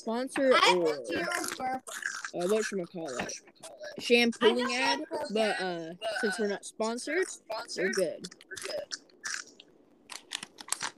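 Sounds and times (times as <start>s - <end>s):
speech: 0.0s - 9.0s
chewing hard crunchy snack: 1.4s - 3.4s, 8.3s - 10.9s.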